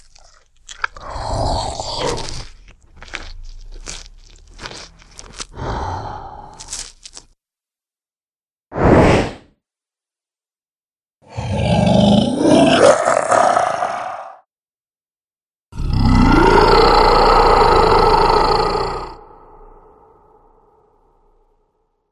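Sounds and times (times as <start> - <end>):
dragon monster sounds: 0.2 - 7.3, 11.3 - 14.4, 15.8 - 20.9.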